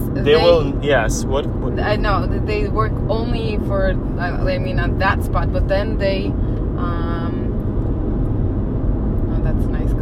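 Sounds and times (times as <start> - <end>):
road and engine rumble inside a moving car: 0.0 - 9.9
voice: 0.1 - 1.7
speech: 0.2 - 7.2.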